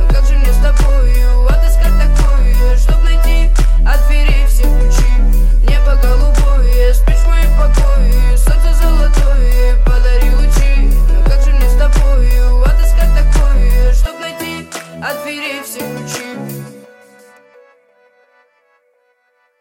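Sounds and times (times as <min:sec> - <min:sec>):
low bass tones at 41, 39 and 37 Hz: 0:00.0 - 0:14.1.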